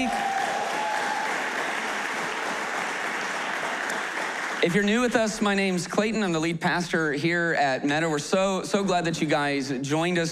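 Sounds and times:
church congregation applauding the worship band: 0.0 - 5.2
speech: 4.6 - 10.3.

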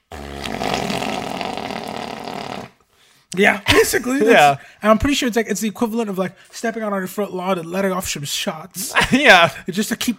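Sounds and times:
voice imitating clapped-out car engine revving: 0.0 - 2.8
speech: 3.3 - 10.1.

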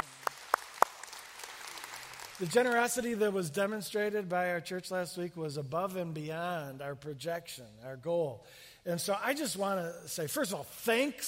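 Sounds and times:
audience hand claps: 0.0 - 3.1
speech: 2.4 - 11.2.

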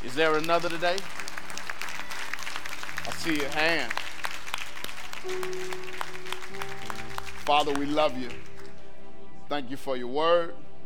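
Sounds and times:
speech: 0.0 - 1.2, 3.1 - 4.1, 5.2 - 6.2, 7.5 - 8.5, 9.5 - 10.6
crowd clapping: 0.0 - 8.8
low sustained keyboard notes: 5.2 - 8.8.

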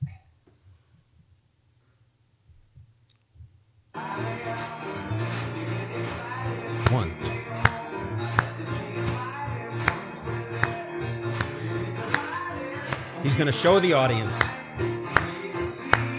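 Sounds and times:
concert audience clapping on beats one and three: 4.5 - 16.1
speech: 13.4 - 14.6.

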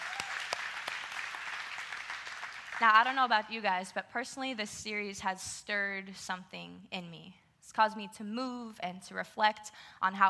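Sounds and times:
audience applause: 0.0 - 2.8
speech: 2.8 - 10.2.

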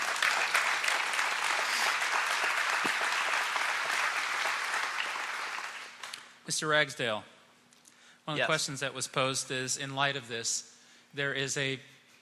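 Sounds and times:
crowd applause: 0.0 - 6.2
speech: 6.5 - 7.3, 8.3 - 11.9.

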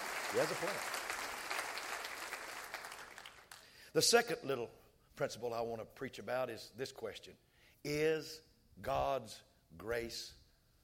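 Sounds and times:
audience clapping hands: 0.0 - 3.8
speech: 0.3 - 1.0, 3.9 - 10.4.

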